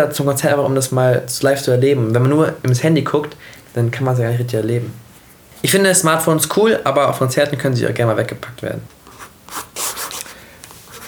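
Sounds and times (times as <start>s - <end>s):
speech: 0.0s - 5.0s, 5.6s - 9.6s
pen signing an autograph page: 9.1s - 10.3s.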